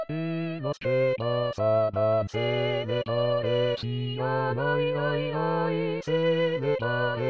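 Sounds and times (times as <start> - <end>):
contraltos singing: 0.1 - 7.2.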